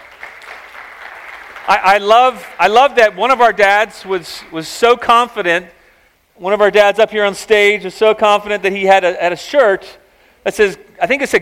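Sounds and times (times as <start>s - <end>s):
audience clapping and cheering for dads: 0.0s - 3.4s
speech: 1.7s - 5.8s, 6.4s - 11.4s.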